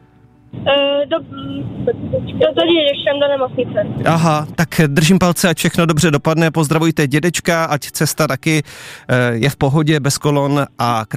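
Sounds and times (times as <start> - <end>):
car interior noise through a tinny phone line: 0.6 - 6.2
speech: 0.7 - 11.1.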